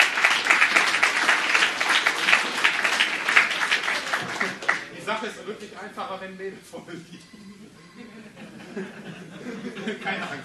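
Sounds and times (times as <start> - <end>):
audience applause: 0.0 - 5.0
speech: 5.2 - 7.6, 8.8 - 10.4
laughter: 6.8 - 10.4.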